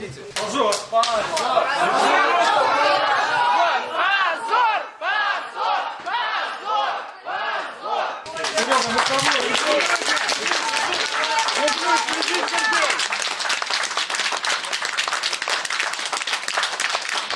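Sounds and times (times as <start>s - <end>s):
clapping: 0.3s - 1.5s, 8.3s - 17.3s
overlapping chatter: 1.1s - 13.3s
crowd chanting shame in courtroom: 1.2s - 8.4s.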